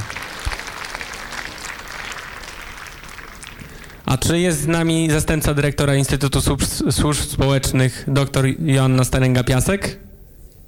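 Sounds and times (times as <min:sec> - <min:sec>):
audience applause: 0:00.0 - 0:04.0
speech: 0:04.1 - 0:10.0.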